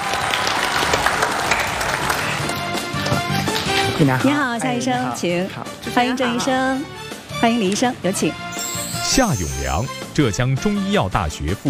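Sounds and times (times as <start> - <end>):
studio audience applause: 0.0 - 3.7
speech: 4.0 - 11.6.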